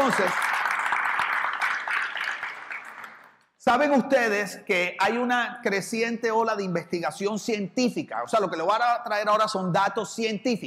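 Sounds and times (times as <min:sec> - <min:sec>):
audience applause: 0:00.0 - 0:03.4
speech: 0:00.1 - 0:00.5, 0:03.6 - 0:10.6.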